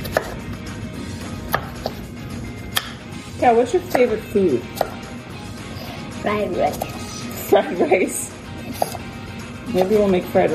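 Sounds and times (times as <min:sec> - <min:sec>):
knife chopping zucchini into strips on a board: 0:00.0 - 0:00.4, 0:01.4 - 0:02.1, 0:02.7 - 0:03.0, 0:03.8 - 0:05.1, 0:06.7 - 0:07.0, 0:08.7 - 0:09.1
speech: 0:03.4 - 0:04.9, 0:06.2 - 0:08.3, 0:09.7 - 0:10.5.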